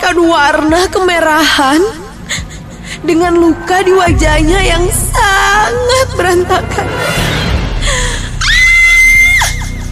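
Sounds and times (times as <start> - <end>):
speech: 0.1 - 2.0, 3.0 - 7.2
person screaming in fright: 8.4 - 9.8.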